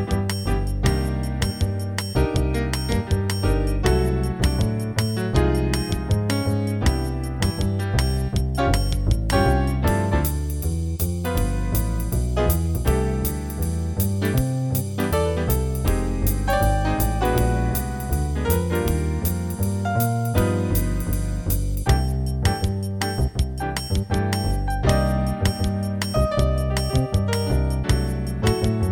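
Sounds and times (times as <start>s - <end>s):
jazz piano play-along in C: 0.0s - 28.9s.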